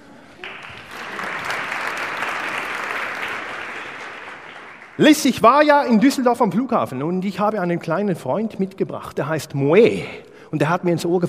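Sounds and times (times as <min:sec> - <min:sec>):
audience applause: 0:00.4 - 0:05.4
speech: 0:05.0 - 0:11.2.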